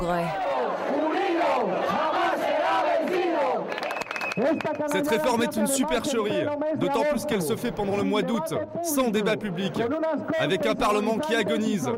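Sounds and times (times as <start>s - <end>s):
speech: 0.0s - 0.4s, 4.4s - 11.9s
protesters chanting outside parliament: 0.3s - 3.7s.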